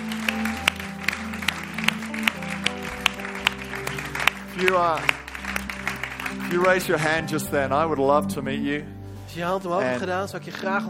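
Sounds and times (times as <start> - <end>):
church audience applause: 0.0 - 7.4
speech: 4.6 - 5.3, 6.3 - 10.8.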